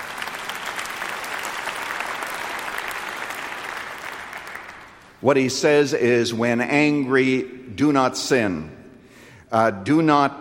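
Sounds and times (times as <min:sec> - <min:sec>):
audience applause: 0:00.0 - 0:05.2
speech: 0:05.2 - 0:08.8, 0:09.5 - 0:10.3.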